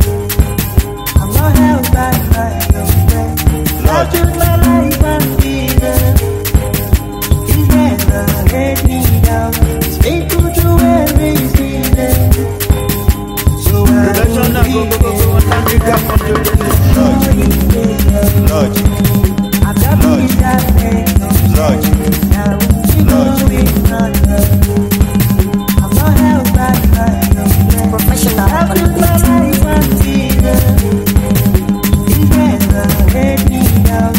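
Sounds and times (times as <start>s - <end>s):
sped-up music beat: 0.0s - 34.1s
laughter: 13.9s - 17.3s, 28.5s - 29.2s.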